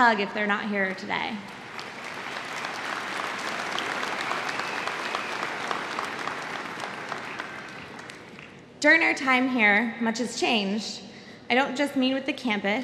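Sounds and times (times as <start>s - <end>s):
speech: 0.0s - 1.6s, 8.8s - 12.8s
audience applause: 1.4s - 8.5s.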